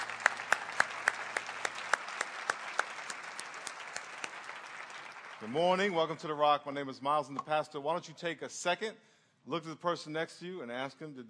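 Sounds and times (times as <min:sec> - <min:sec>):
church congregation applauding: 0:00.0 - 0:06.5
speech: 0:05.4 - 0:11.2.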